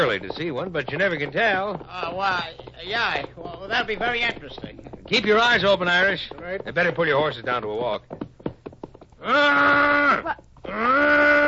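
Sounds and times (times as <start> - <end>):
speech: 0.0 - 8.2, 9.2 - 11.2
man imitating a lost calf's call: 9.2 - 11.4.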